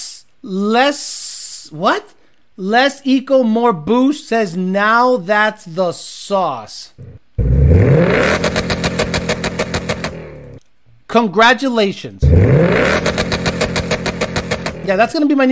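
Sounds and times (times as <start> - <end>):
speech: 0.4 - 7.2, 11.1 - 13.1, 14.9 - 15.5
car engine revving off the rev limiter: 7.0 - 10.6, 12.2 - 14.9.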